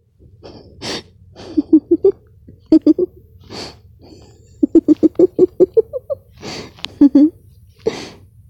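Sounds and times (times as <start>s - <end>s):
person giggling: 0.4s - 3.2s, 4.0s - 7.4s.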